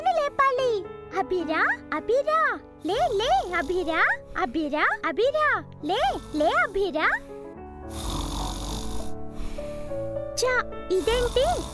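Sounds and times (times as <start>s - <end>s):
speech: 1.3s - 8.1s, 10.4s - 11.7s
person snoring in deep sleep: 7.8s - 10.0s, 10.9s - 11.7s.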